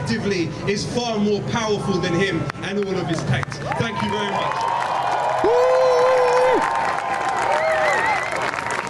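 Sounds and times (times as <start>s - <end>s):
speech: 0.2s - 4.8s
high energy crowd cheering and applauding: 2.5s - 8.8s.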